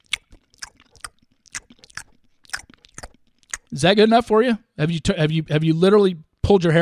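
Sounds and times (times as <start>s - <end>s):
wet crunchy chewing of a burger: 0.0s - 3.8s
speech: 3.7s - 6.7s.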